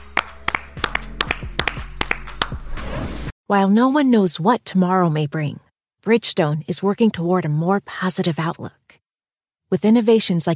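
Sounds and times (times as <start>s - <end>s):
hands clapping: 0.0s - 2.6s
speech: 3.5s - 8.8s, 9.7s - 10.5s.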